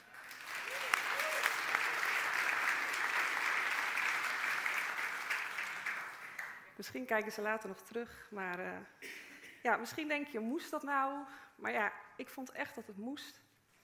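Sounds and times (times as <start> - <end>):
audience applause in a hall: 0.0 - 6.7
speech: 6.8 - 13.4.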